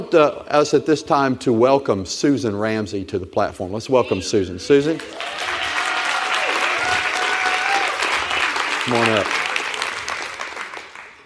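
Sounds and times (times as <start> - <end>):
speech: 0.1 - 5.6, 8.9 - 9.4
audience applause: 4.9 - 11.2.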